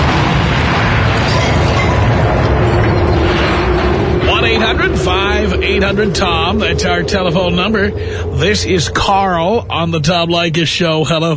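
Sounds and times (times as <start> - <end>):
explosion sound effect on a radio call-in show: 0.0 - 10.8
speech: 5.0 - 11.3.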